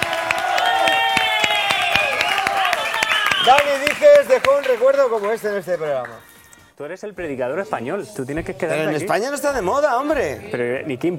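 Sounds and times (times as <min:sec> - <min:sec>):
voices cheering: 0:00.0 - 0:06.3
audience applause: 0:00.0 - 0:06.7
speech: 0:03.4 - 0:11.1.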